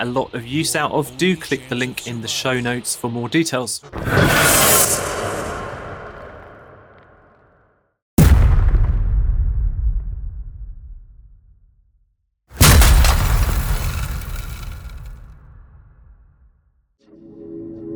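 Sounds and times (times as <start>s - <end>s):
speech: 0.0s - 5.1s
movie trailer booming impacts from a sample pack: 8.2s - 11.5s, 12.6s - 16.2s.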